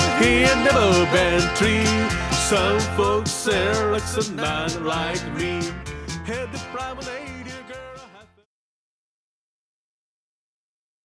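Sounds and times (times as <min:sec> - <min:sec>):
vocals: 0:00.0 - 0:08.5.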